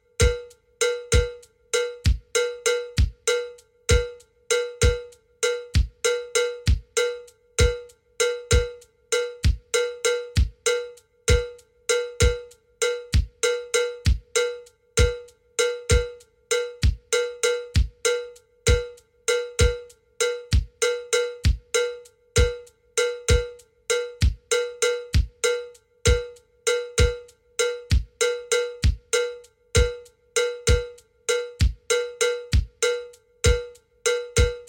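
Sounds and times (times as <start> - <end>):
slow standard twelve-pulse bell pattern: 0.0 - 34.6.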